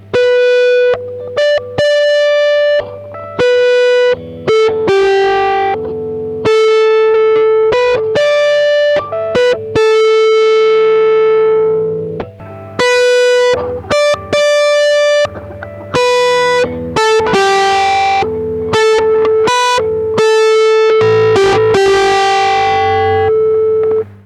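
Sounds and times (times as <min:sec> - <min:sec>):
high-gain guitar lead: 0:00.0 - 0:24.2.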